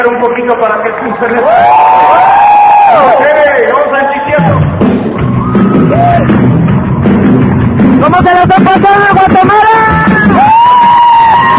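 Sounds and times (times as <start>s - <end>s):
speech: 0.0s - 2.4s, 3.0s - 4.6s, 8.0s - 10.7s
audience applause and cheering: 0.3s - 11.5s.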